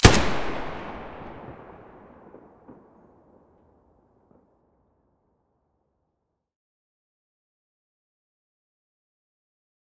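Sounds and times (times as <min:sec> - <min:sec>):
Galil rifle muzzle blast: 0:00.0 - 0:02.0.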